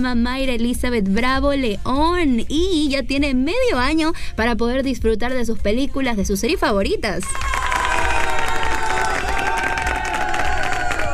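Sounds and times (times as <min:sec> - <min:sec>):
speech: 0:00.0 - 0:07.5
applause and cheering: 0:07.2 - 0:11.1.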